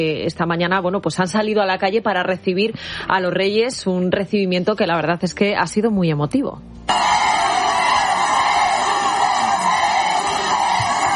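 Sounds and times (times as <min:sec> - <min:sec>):
speech: 0:00.0 - 0:07.1
large crowd shouting a name: 0:06.9 - 0:11.1.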